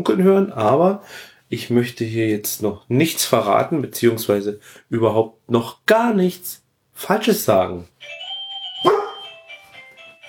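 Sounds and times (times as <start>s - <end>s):
speech: 0.0s - 8.2s
doorbell ringing: 8.0s - 10.2s
dog barking: 8.8s - 9.2s.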